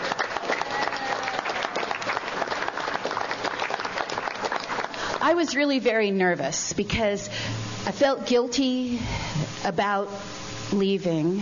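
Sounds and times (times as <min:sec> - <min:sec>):
audience applause: 0:00.0 - 0:05.4
speech: 0:05.3 - 0:11.4.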